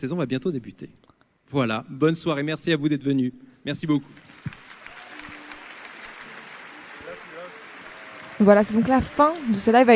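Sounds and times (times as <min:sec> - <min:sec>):
speech: 0:00.0 - 0:04.6, 0:08.4 - 0:09.9
crowd applause: 0:04.2 - 0:09.9.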